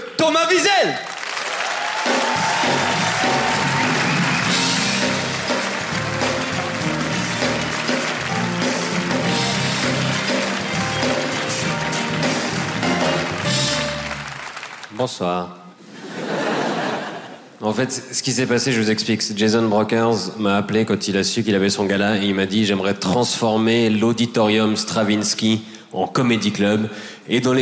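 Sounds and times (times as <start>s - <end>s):
speech: 0.2s - 1.1s, 15.0s - 15.6s, 17.6s - 27.6s
audience applause and cheering: 1.0s - 15.0s
laughter: 15.8s - 17.6s.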